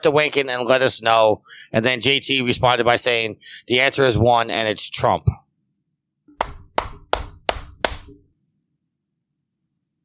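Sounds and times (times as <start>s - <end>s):
speech: 0.0s - 5.4s
hand clapping: 6.4s - 8.2s.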